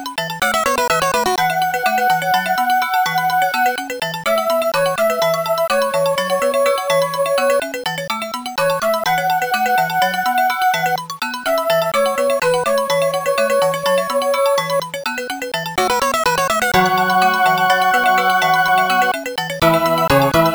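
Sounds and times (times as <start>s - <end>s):
Amiga in-game music: 0.4s - 7.9s, 8.6s - 20.5s.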